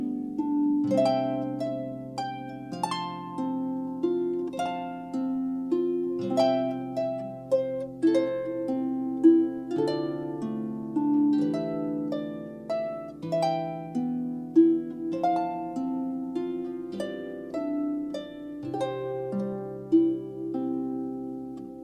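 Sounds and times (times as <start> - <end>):
harp piece: 0.0 - 21.8.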